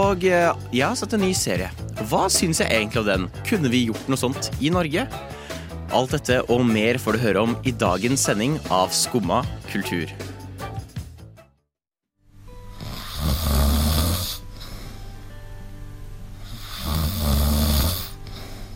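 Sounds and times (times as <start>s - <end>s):
speech: 0.0s - 10.3s
loud snoring: 12.6s - 14.9s, 16.4s - 18.7s.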